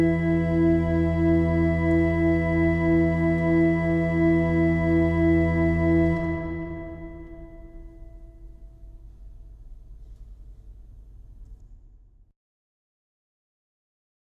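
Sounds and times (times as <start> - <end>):
organ improvisation: 0.0 - 9.6.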